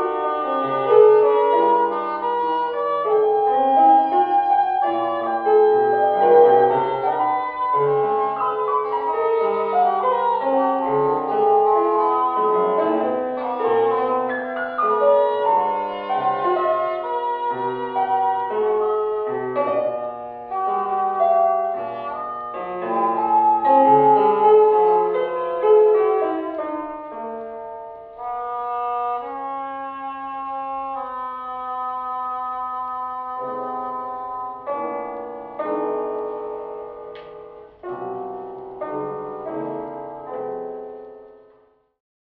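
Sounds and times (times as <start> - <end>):
English horn: 0.0 - 35.9
piano: 0.0 - 42.0.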